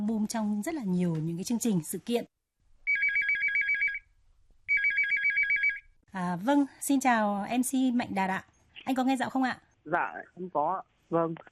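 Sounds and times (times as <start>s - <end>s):
speech: 0.1s - 2.4s, 6.1s - 11.5s
telephone ringing with an electronic warbling ringtone: 2.8s - 4.1s, 4.7s - 6.0s.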